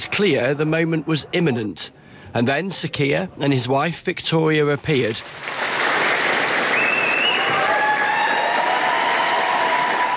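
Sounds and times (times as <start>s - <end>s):
speech: 0.0s - 5.6s
staff applauding in the street: 5.2s - 10.1s.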